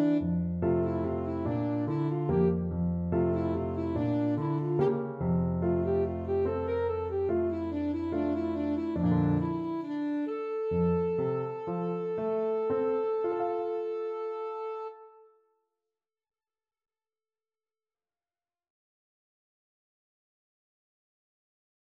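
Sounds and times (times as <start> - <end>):
flute and saxophone duet: 0.0 - 15.2.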